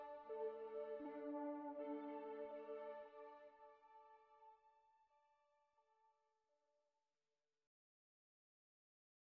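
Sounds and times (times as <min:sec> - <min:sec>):
Korg 05RW synthesizer: 0:00.0 - 0:05.0.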